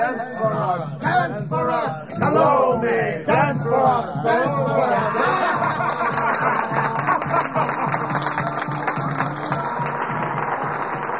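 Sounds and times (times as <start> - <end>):
speech: 0.0 - 7.7
voices cheering: 0.0 - 11.1
rowdy laughter: 5.0 - 8.2
guests applauding loudly: 5.1 - 11.1.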